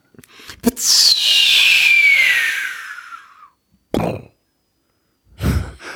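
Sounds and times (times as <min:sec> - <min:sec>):
voice imitating a firework rocket: 0:00.6 - 0:03.4.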